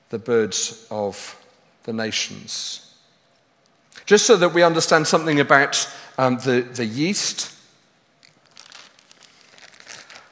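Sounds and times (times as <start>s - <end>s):
speech: 0.1s - 2.9s, 4.0s - 7.6s
paper bag of flour crinkling: 8.2s - 10.3s.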